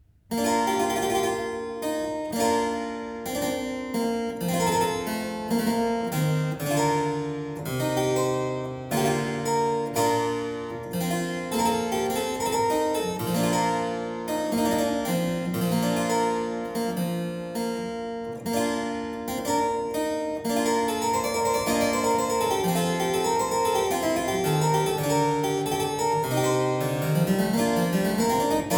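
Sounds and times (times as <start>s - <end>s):
harpsichord pavane: 0.3s - 28.7s.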